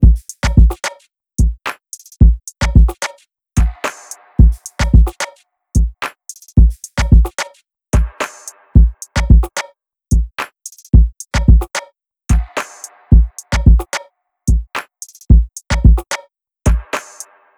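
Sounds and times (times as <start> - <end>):
drums: 0.0 - 17.2.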